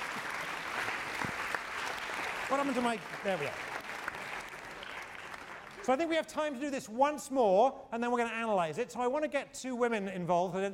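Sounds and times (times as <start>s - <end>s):
classroom round of applause: 0.0s - 5.9s
speech: 2.5s - 3.7s, 5.8s - 10.7s.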